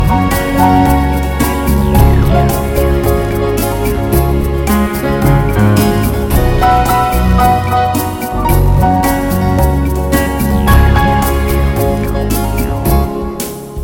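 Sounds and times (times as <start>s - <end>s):
slow beautiful swing music: 0.0s - 13.8s.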